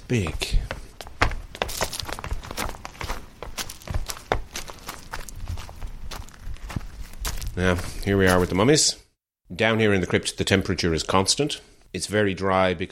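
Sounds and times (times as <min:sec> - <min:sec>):
footsteps descending uneven stone steps into a limestone crypt: 0:00.0 - 0:08.7
speech: 0:00.1 - 0:00.7, 0:07.6 - 0:12.9.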